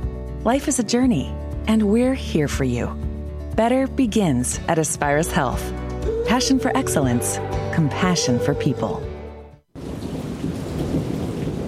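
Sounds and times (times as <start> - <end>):
speech: 0.4 - 3.0, 3.6 - 9.1
heavy rain: 9.8 - 11.6
thunder rumbling: 9.8 - 11.6.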